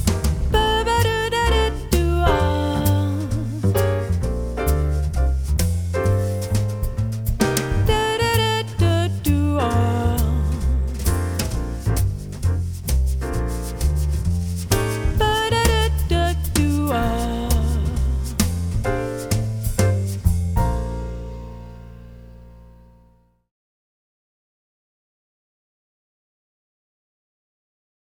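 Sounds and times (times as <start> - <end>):
jazz call and response: 0.0 - 22.3.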